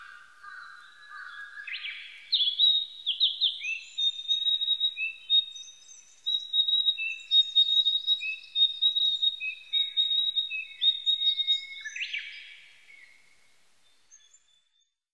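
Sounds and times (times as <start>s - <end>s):
Narcissus flycatcher singing loud high whistled phrases: 1.0s - 12.5s.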